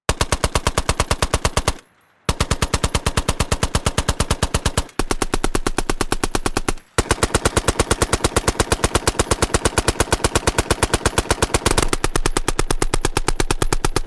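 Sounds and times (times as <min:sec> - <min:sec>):
Vickers machine gun firing: 0:00.1 - 0:14.0.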